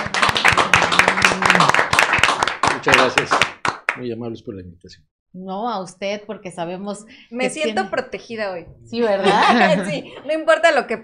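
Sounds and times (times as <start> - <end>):
audience applause: 0.0 - 4.0
speech: 3.0 - 3.4, 4.0 - 11.0
laughter: 9.2 - 10.3.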